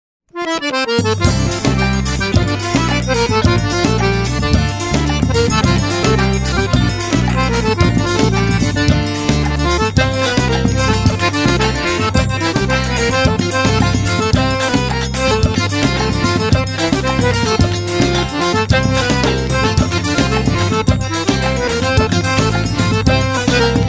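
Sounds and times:
accordion forro music: 0.3 - 23.8.

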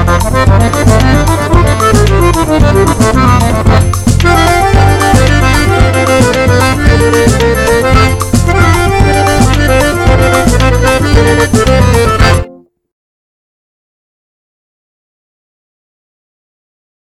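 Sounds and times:
forró music: 0.0 - 12.7.

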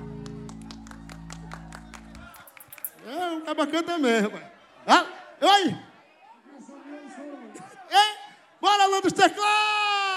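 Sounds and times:
audience applause: 0.0 - 3.1
speech: 3.1 - 5.9, 7.9 - 10.0.

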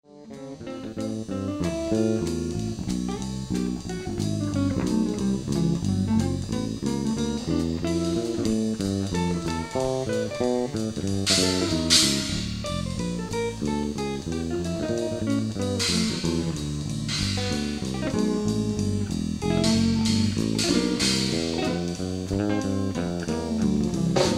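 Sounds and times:
jazz jam session: 0.1 - 24.3.

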